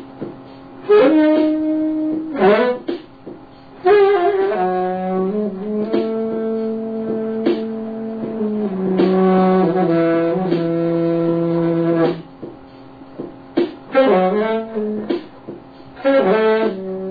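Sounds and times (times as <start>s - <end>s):
trombone: 0.9s - 2.9s, 3.8s - 12.3s, 13.9s - 15.2s, 15.9s - 17.0s.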